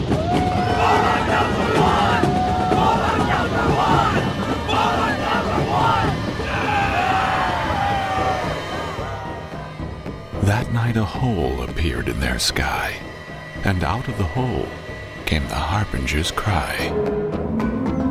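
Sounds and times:
large crowd murmuring and chattering: 0.0 - 10.7
calls and whoops: 0.1 - 9.7
speech: 10.9 - 17.5.

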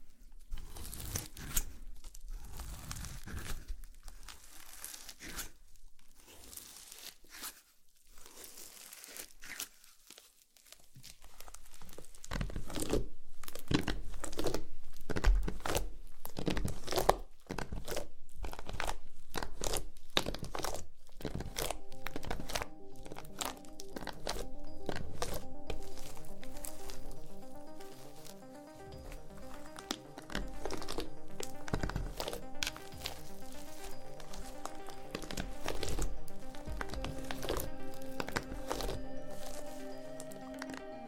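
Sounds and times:
slime squished and pulled: 0.0 - 40.9.

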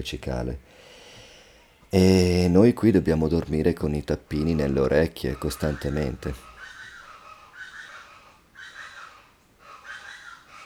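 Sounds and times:
speech: 0.0 - 1.0, 1.9 - 6.5
plain chachalaca bird calls: 4.0 - 10.6.

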